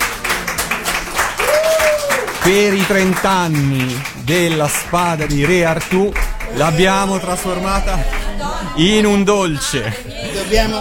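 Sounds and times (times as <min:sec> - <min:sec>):
audience applause in a radio studio: 0:00.0 - 0:09.1
speech: 0:02.4 - 0:10.8.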